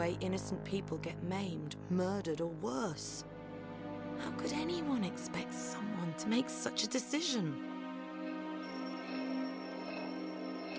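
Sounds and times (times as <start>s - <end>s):
speech: 0.0s - 3.4s, 4.2s - 7.7s
magic orb ringing with incoming message: 8.6s - 10.7s.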